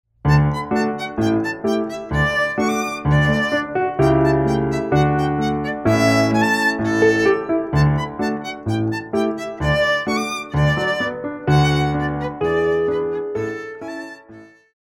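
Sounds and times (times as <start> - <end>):
gavotte for violin: 0.3 - 14.8.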